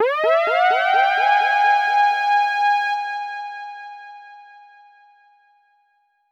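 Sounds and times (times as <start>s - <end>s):
siren: 0.0s - 2.9s.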